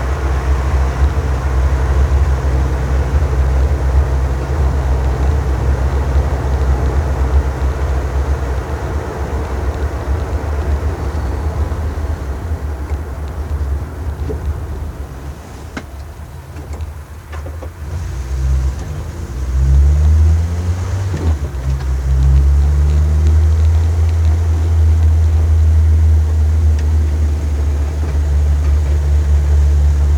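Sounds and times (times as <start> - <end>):
Renault 4 car: 0.0 - 30.1.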